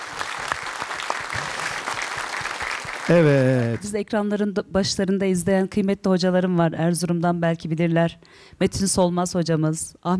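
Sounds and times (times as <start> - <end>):
audience applause: 0.0 - 3.9
speech: 3.1 - 10.1.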